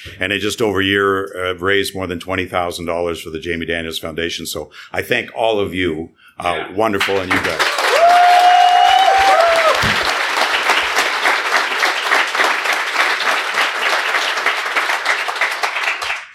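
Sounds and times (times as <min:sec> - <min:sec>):
speech: 0:00.1 - 0:07.8
live audience applause: 0:07.0 - 0:16.3.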